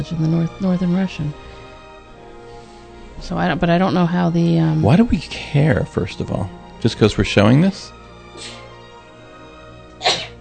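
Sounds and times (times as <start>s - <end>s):
speech: 0.0s - 1.5s, 3.2s - 8.6s
breathy puff: 2.4s - 3.0s, 8.3s - 8.8s, 10.0s - 10.3s
sneeze: 10.0s - 10.3s.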